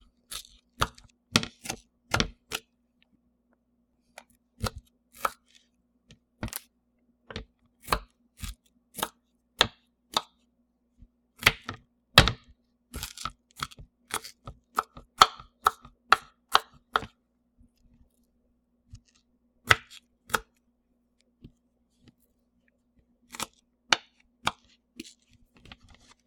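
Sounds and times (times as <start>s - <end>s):
onion cutting on poly board: 0.3s - 2.6s, 4.6s - 5.6s, 7.8s - 10.3s, 11.4s - 17.2s, 18.9s - 20.6s.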